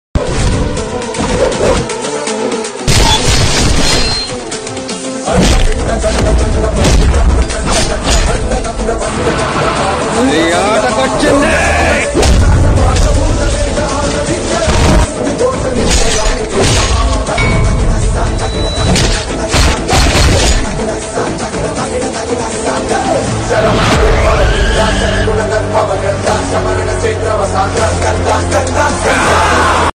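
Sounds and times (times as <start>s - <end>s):
climax background music: 0.2s - 29.9s.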